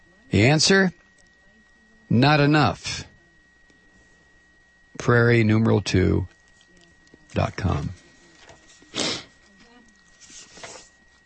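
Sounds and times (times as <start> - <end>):
speech: 0.3 - 1.0, 2.1 - 2.9, 5.0 - 6.4, 7.4 - 8.0
person sniffing: 8.9 - 9.4.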